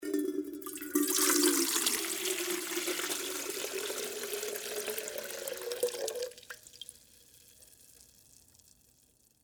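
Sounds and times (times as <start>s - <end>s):
water pouring from a metal pitcher: 0.0s - 7.0s.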